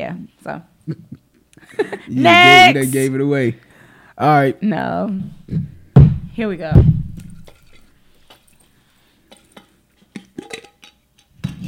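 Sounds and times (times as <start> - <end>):
speech: 0.0 - 5.7, 6.4 - 7.0
small objects rattling in a glass jam jar to mimic a dice roll: 6.6 - 11.4.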